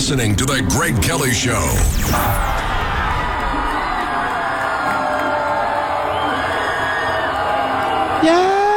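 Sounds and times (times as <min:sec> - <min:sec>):
speech: 0:00.1 - 0:02.6
young crowd yelling and cheering: 0:02.3 - 0:08.7.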